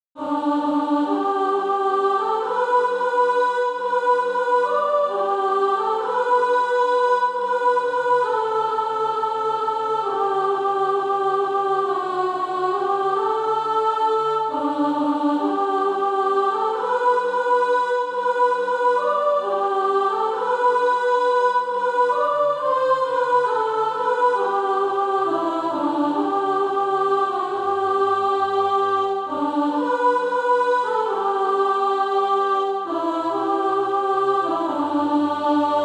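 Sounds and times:
soprano singing: 0.2 - 35.8.

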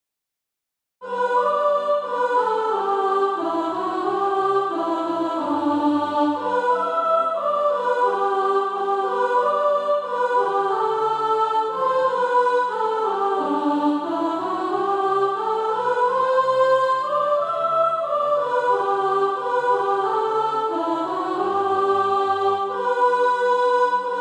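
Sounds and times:
soprano singing: 1.0 - 24.1.

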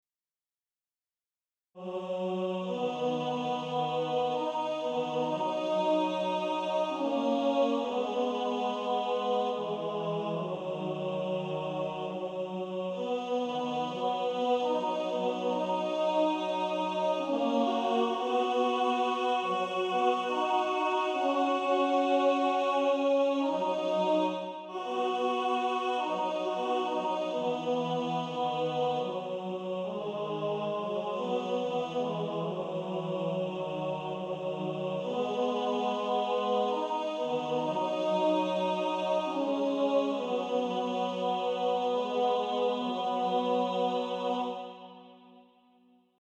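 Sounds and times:
male choir: 1.8 - 45.4.

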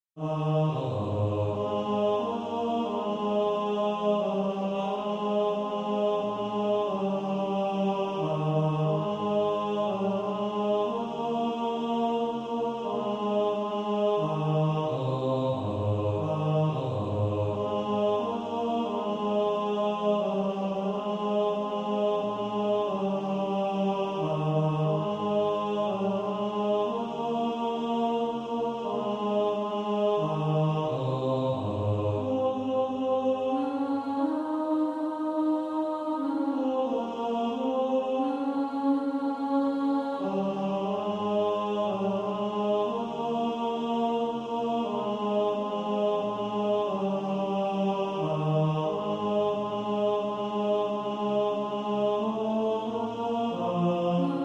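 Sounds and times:
tenor singing: 0.2 - 54.4.

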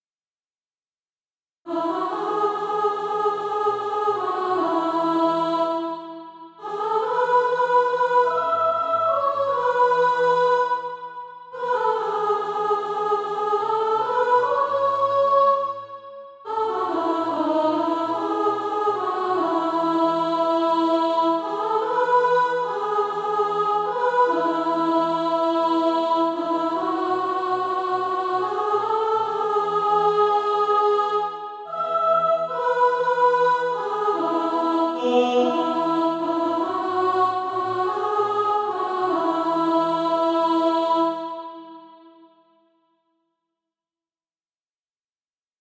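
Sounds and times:
soprano singing: 1.7 - 15.7, 16.5 - 41.9.

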